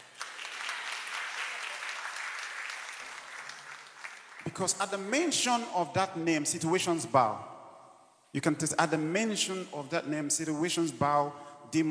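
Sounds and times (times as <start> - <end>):
crowd clapping: 0.0 - 4.8
speech: 4.5 - 7.5, 8.4 - 11.8.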